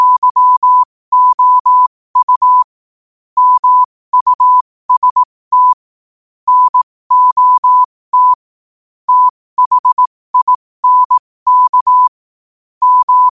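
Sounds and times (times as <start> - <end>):
morse code at 5 wpm: 0.0 - 2.7, 3.4 - 5.8, 6.5 - 8.4, 9.1 - 12.2, 12.8 - 13.3.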